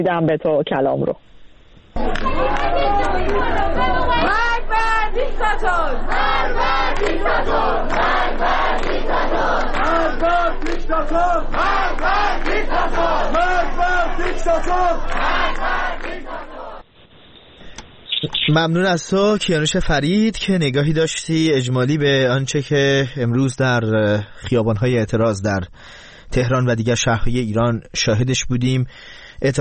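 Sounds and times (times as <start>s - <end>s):
speech: 0.0s - 1.4s, 2.2s - 4.5s, 5.1s - 16.4s, 18.5s - 29.6s
protest crowd chanting in unison at the University of Kurdistan: 2.0s - 16.9s.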